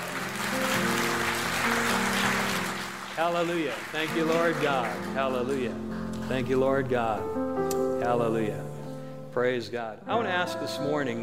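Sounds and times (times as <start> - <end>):
audience applauding: 0.0 - 6.5
sustained low keyboard chords: 0.0 - 11.2
speech: 3.2 - 7.4, 8.0 - 8.7, 9.3 - 11.2.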